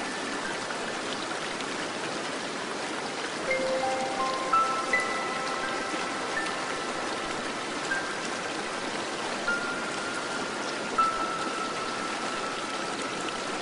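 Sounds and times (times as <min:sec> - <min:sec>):
waterfall: 0:00.0 - 0:13.6.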